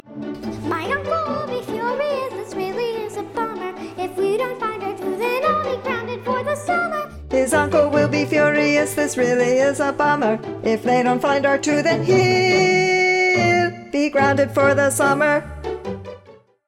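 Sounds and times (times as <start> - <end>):
tenor singing at auditions: 0.6 - 15.8.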